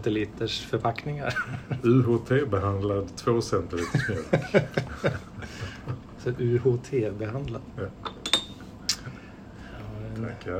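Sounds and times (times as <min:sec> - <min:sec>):
speech: 0:00.0 - 0:08.1, 0:10.2 - 0:10.5
quiet hum: 0:00.0 - 0:10.5
laughter: 0:03.8 - 0:06.1
ceramic coffee cup clinking: 0:08.0 - 0:08.6.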